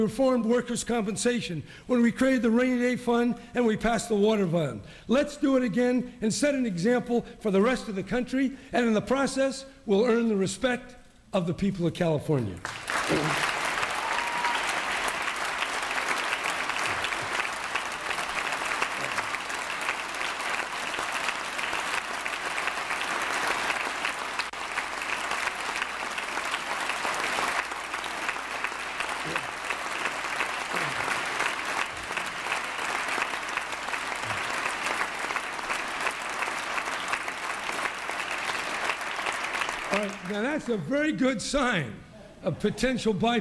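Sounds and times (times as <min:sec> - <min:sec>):
speech: 0:00.0 - 0:13.5, 0:40.7 - 0:43.3
audience applause: 0:12.6 - 0:40.7.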